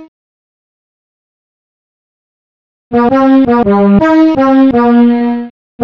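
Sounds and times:
boot music: 2.9s - 5.8s.

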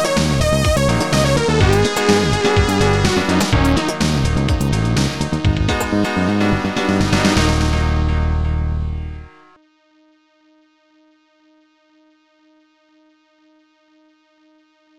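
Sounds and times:
blues music: 0.0s - 9.5s.

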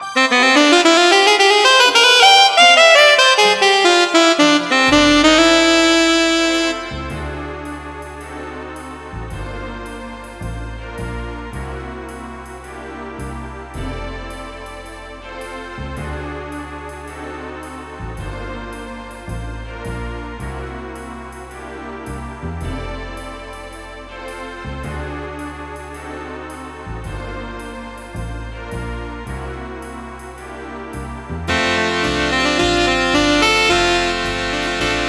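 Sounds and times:
saxophone: 0.0s - 7.5s, 31.5s - 35.0s.

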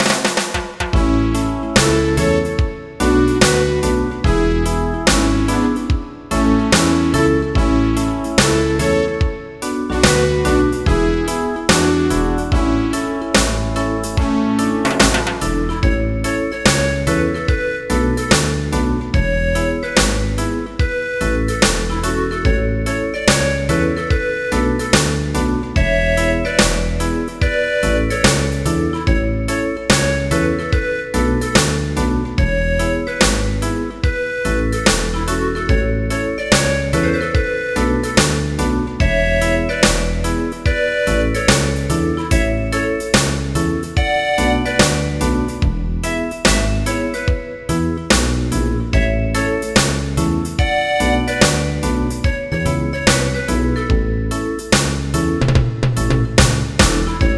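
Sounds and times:
reggae music: 0.0s - 57.3s.

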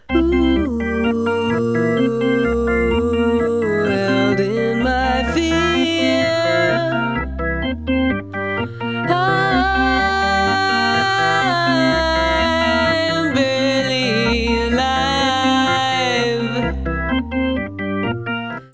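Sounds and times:
music: 0.0s - 18.7s.

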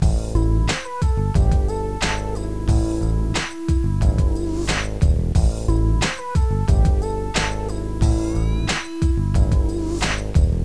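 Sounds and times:
hip hop music: 0.0s - 10.6s.

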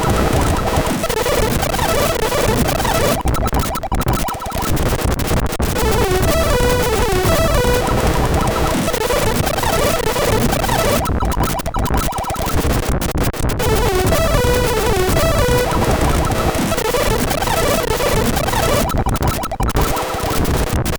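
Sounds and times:
disco bass SID chiptune: 0.0s - 20.9s.

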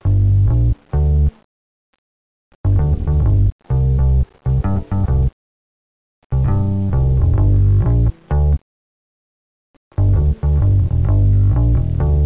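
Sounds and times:
bass: 0.0s - 1.4s, 2.6s - 5.4s, 6.3s - 8.6s, 9.9s - 12.2s.

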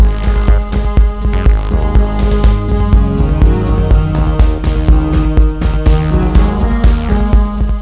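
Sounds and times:
bass groove: 0.0s - 7.8s.

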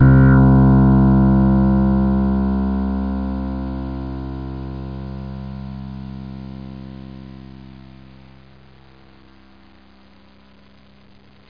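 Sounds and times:
synthesizer bass: 0.0s - 8.3s.

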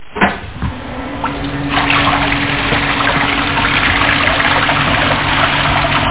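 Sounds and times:
water: 0.5s - 6.0s.

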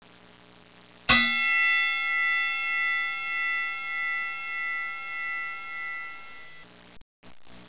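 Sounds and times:
triangle: 1.1s - 6.6s.

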